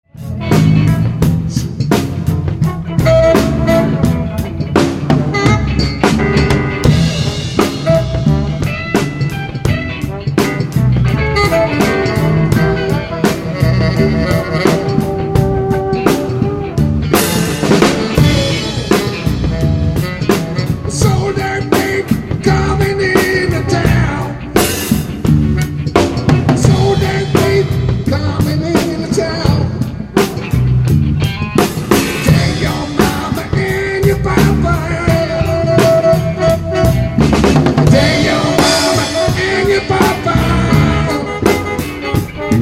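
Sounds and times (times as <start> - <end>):
funk music: 0.0 - 42.6.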